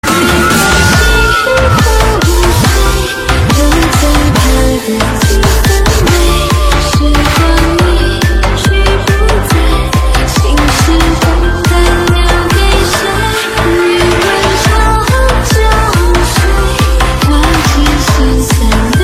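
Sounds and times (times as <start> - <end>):
remix ringtone: 0.0 - 18.6.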